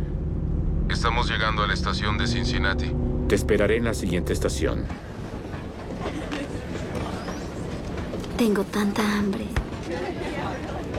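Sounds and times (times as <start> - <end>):
train in motion rumbling: 0.0 - 10.9
speech: 0.9 - 5.1, 8.4 - 10.3.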